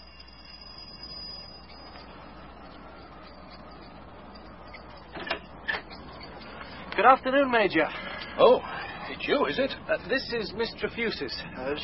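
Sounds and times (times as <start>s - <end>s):
doorbell being pushed and ringing: 0.0s - 6.5s
speech: 7.0s - 11.8s.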